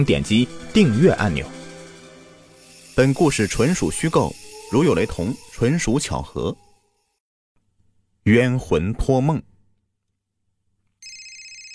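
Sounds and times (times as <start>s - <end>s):
speech: 0.0s - 1.6s, 3.0s - 6.6s, 8.2s - 9.5s
telephone ringing: 11.0s - 11.7s.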